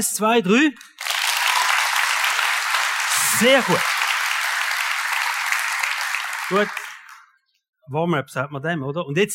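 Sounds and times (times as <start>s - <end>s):
speech: 0.0s - 0.9s, 3.3s - 3.9s, 6.5s - 6.8s, 7.9s - 9.3s
audience clapping: 0.8s - 7.3s.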